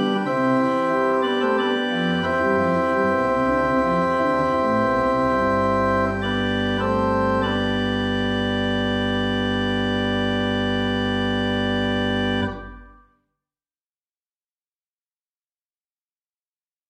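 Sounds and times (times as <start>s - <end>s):
classical organ music: 0.0s - 13.1s.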